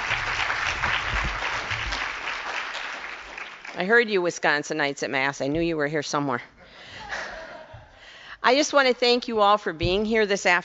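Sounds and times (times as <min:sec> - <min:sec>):
audience applause welcoming a speaker: 0:00.0 - 0:03.9
speech: 0:03.8 - 0:06.6, 0:08.4 - 0:10.6
laughter: 0:06.9 - 0:08.0.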